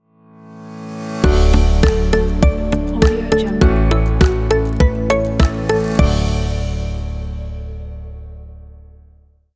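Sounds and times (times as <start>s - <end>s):
calm innovation logo jingle: 1.2s - 7.5s.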